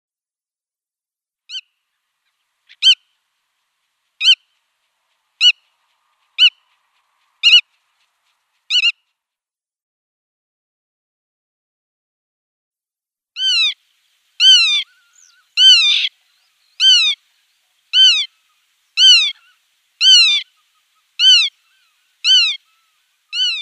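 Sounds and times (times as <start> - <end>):
Black-tailed godwit sharp nasal call: 2.7 - 3.1, 4.2 - 4.6, 5.4 - 6.8, 7.4 - 9.0, 13.4 - 13.8, 14.4 - 16.1, 16.8 - 17.2, 17.9 - 23.6.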